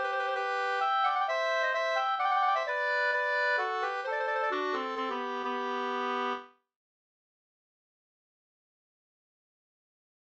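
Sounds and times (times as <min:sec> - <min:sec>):
two-part polska folk dance tune: 0:00.0 - 0:06.5.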